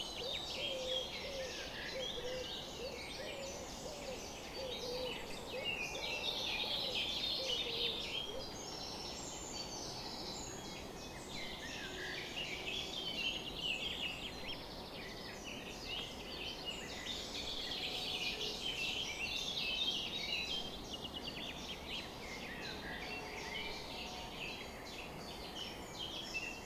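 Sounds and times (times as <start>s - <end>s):
summer morning bird chorus: 0.0s - 26.6s.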